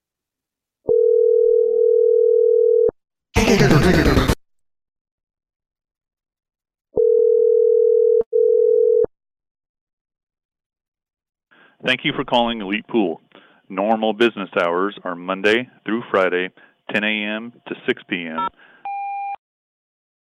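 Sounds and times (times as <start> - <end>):
low-pitched telephone dial tone during a prank phone call: 0.9 - 3.0, 7.0 - 9.1
speech: 3.5 - 4.2, 11.9 - 18.7.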